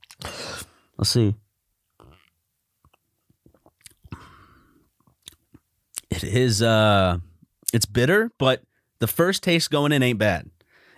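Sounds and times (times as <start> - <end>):
speech: 1.0 - 1.4, 6.3 - 10.5
wet mouth clicks and lip smacks: 2.8 - 4.2, 5.0 - 6.1.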